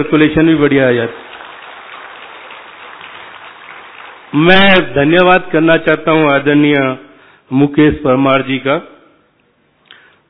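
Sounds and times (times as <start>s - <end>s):
speech: 0.0s - 1.3s, 4.4s - 8.9s
audience applauding at an event: 0.8s - 4.8s.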